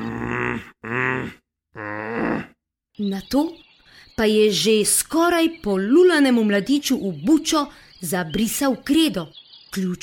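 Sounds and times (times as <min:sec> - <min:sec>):
voice imitating an angry growl: 0:00.0 - 0:02.6
speech: 0:03.0 - 0:03.6, 0:04.2 - 0:10.0.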